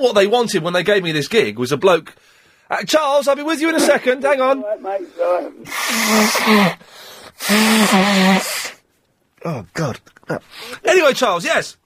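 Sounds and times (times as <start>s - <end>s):
speech: 0.0s - 8.6s, 9.4s - 11.8s
person blowing nose: 5.6s - 8.8s.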